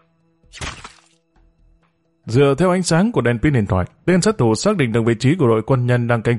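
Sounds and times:
gunshot: 0.5 - 1.1
speech: 2.3 - 6.3.

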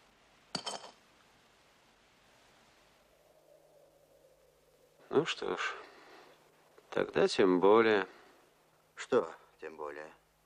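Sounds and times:
emptied glass bottle set down on a concrete base: 0.5 - 1.0
speech: 5.1 - 5.8, 6.9 - 8.2, 9.0 - 10.2.

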